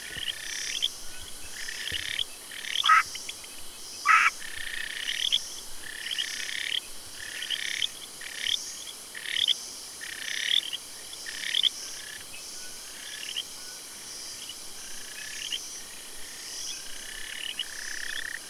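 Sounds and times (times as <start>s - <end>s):
frog calls: 0.0s - 3.3s, 4.0s - 12.2s, 12.9s - 13.5s, 15.0s - 15.6s, 16.7s - 18.4s.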